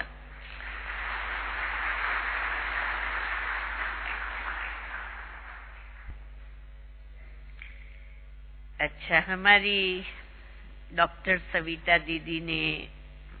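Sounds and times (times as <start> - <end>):
audience clapping loudly: 0.0 - 6.2
speech: 8.8 - 10.2, 10.9 - 13.0.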